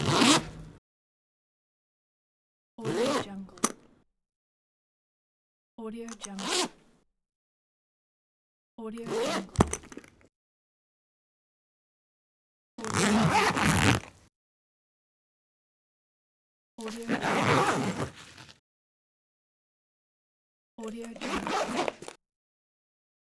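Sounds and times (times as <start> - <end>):
zipper: 0.0 - 0.8, 2.8 - 3.8, 6.2 - 6.9, 9.0 - 10.1, 12.8 - 14.3, 16.8 - 18.6, 21.0 - 22.2.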